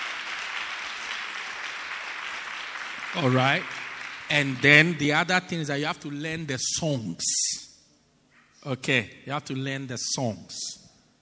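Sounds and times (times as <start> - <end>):
audience clapping hands: 0.0 - 5.0
speech: 3.1 - 7.6, 8.6 - 10.8.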